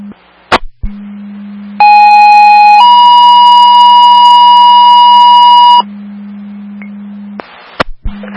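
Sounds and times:
low radio hum: 0.0 - 1.9, 5.2 - 8.3
two-tone emergency dispatch pager alert: 1.8 - 5.8
static click: 7.4 - 8.0.

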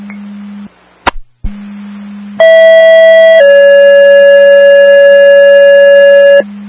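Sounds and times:
low steady hum: 0.0 - 6.6
two-tone fire dispatch alert: 2.4 - 6.4.

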